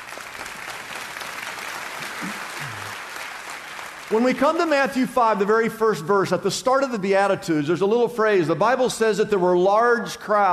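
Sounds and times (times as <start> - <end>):
audience clapping: 0.0 - 5.5
speech: 4.1 - 10.5.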